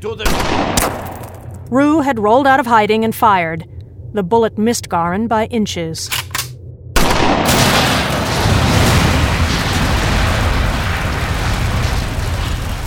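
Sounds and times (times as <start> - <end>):
speech: 0.0 - 6.2
helicopter gas tank explosion: 7.0 - 12.8.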